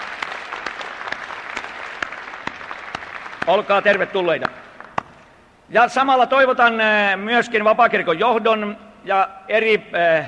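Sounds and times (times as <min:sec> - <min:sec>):
audience applause: 0:00.0 - 0:05.2
speech: 0:03.4 - 0:04.6, 0:05.7 - 0:10.2.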